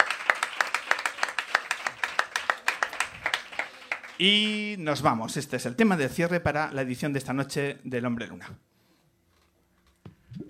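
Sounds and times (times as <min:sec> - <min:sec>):
audience clapping: 0:00.0 - 0:04.7
speech: 0:04.2 - 0:08.7.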